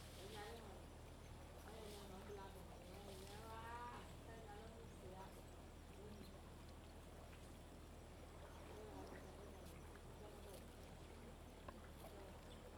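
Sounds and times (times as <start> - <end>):
river: 0.0 - 12.7.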